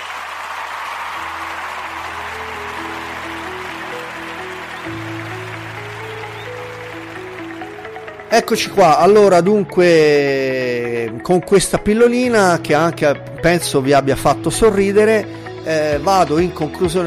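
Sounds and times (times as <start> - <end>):
applause sound effect: 0.0 - 8.7
speech: 8.3 - 17.0.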